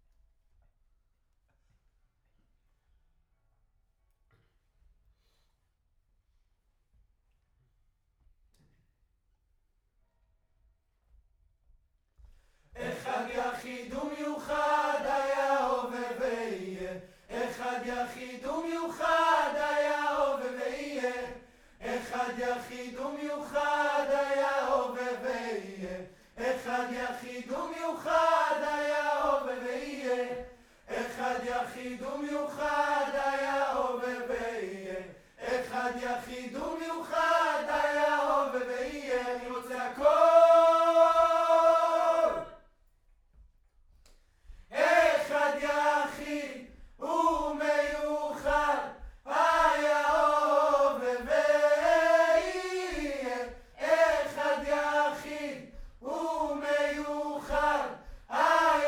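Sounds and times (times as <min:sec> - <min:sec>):
distant choir: 0:12.8 - 0:42.7, 0:44.7 - 0:58.8.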